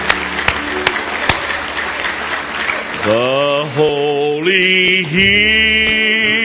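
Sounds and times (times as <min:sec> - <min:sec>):
church congregation clapping in praise during a service: 0:00.0 - 0:04.5
speech: 0:03.1 - 0:06.3.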